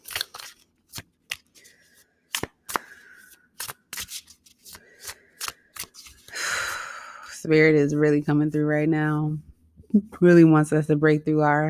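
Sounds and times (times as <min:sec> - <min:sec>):
deck of animal oracle cards being shuffled: 0:00.0 - 0:06.4
speech: 0:07.4 - 0:11.6.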